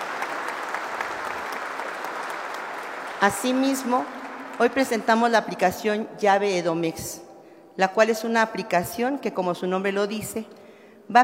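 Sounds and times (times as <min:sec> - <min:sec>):
crowd applause: 0:00.0 - 0:04.8
speech: 0:03.2 - 0:11.2.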